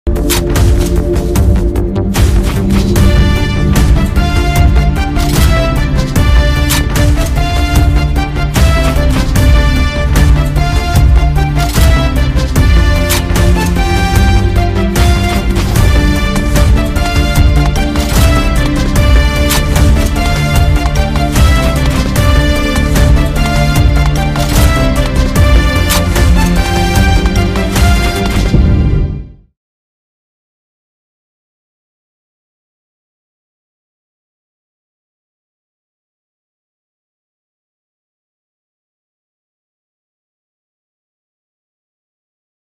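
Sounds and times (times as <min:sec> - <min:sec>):
climax background music cover: 0:00.1 - 0:29.5.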